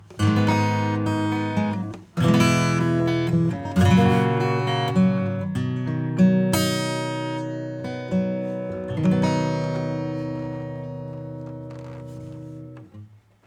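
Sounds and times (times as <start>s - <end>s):
acoustic music: 0.0s - 13.2s.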